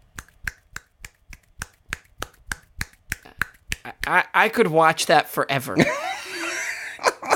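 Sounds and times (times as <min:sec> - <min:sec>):
one hand clapping, fingertips striking the palm: 0:00.1 - 0:04.2
speech: 0:04.1 - 0:06.0
laughter: 0:05.8 - 0:07.3.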